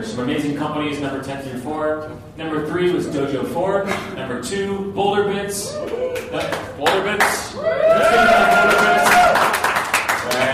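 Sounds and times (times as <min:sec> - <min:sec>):
speech: 0:00.0 - 0:08.8
crowd cheering and whooping: 0:05.6 - 0:06.7, 0:07.6 - 0:09.7
crowd applause: 0:07.7 - 0:10.5.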